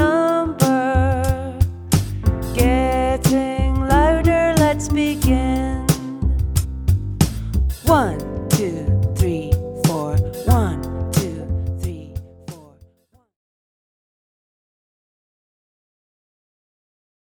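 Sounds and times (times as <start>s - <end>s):
percussion performance piece: 0.0s - 12.7s.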